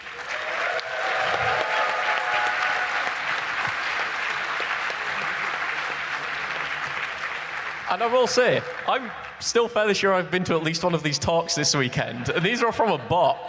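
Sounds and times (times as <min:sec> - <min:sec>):
round of applause: 0:00.0 - 0:09.4
speech: 0:07.9 - 0:13.4.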